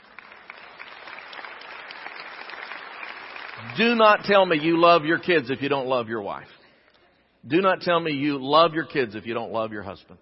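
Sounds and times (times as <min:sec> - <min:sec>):
audience clapping: 0:00.0 - 0:05.5
speech: 0:03.6 - 0:06.6, 0:07.4 - 0:10.2.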